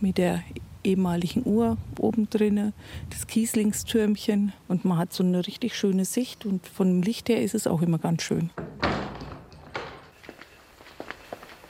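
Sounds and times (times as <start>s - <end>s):
speech: 0.0s - 8.8s
church door being opened with heavy clunking thuds: 8.5s - 10.2s
light soft footsteps: 8.5s - 11.6s.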